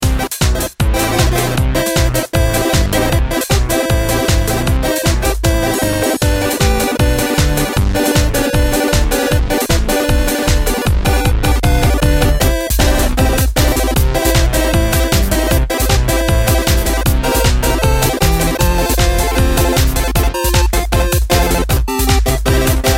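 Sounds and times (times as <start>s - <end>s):
electronic music: 0.0s - 22.9s.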